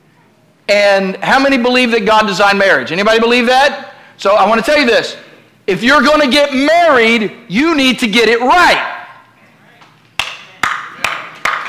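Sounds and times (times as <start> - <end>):
speech: 0.7 - 8.9
hands clapping: 9.8 - 11.6.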